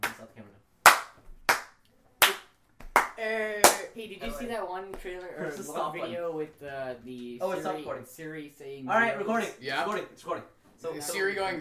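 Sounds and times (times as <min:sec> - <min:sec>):
hand claps to synchronize audio: 0:00.0 - 0:00.2, 0:00.8 - 0:03.9
speech: 0:03.2 - 0:11.5.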